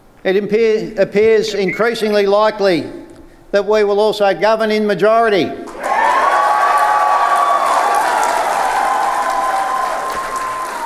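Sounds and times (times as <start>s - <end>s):
speech: 0.2s - 5.6s
supporters applauding and cheering: 5.7s - 10.8s.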